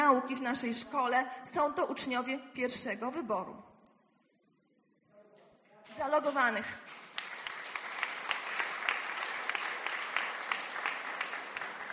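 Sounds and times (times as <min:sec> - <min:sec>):
speech: 0:00.1 - 0:03.7, 0:05.9 - 0:07.0
audience applause: 0:06.9 - 0:11.9.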